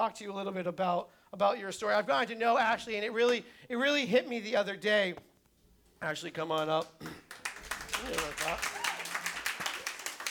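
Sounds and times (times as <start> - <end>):
speech: 0.0 - 5.3, 6.0 - 7.4, 8.0 - 8.8
audience clapping: 6.5 - 10.2.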